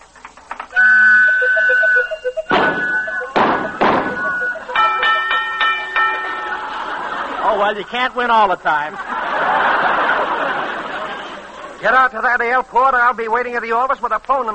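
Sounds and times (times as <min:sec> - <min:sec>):
pinball machine being played: 0:00.6 - 0:07.4
laughter: 0:01.3 - 0:11.9
speech: 0:07.7 - 0:09.7, 0:11.8 - 0:14.5.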